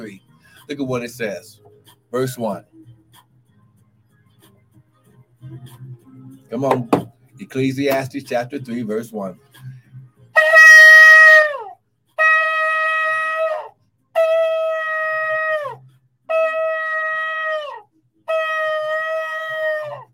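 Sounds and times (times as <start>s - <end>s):
speech: 0.0s - 2.7s, 5.4s - 9.7s
ram's horn shofar being blown: 10.3s - 20.1s.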